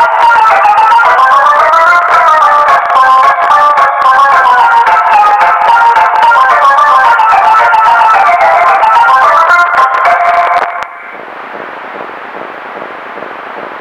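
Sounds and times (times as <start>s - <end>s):
fuzzed circus organ music: 0.0s - 10.8s.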